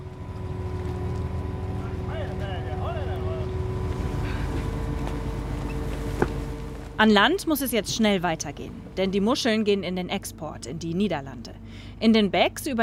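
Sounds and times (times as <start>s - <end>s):
rushing wash of water: 0.0s - 9.6s
fishing boat engine droning: 0.0s - 12.8s
wind: 0.0s - 12.8s
speech: 7.0s - 12.8s.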